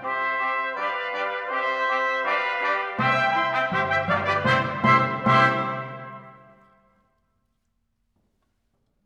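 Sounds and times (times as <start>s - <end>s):
four timpani: 0.0s - 7.0s
five trumpets: 0.0s - 7.1s.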